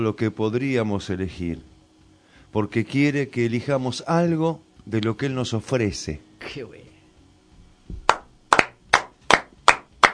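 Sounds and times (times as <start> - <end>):
speech: 0.0 - 1.7, 2.5 - 6.9
slow hand claps: 8.0 - 10.1.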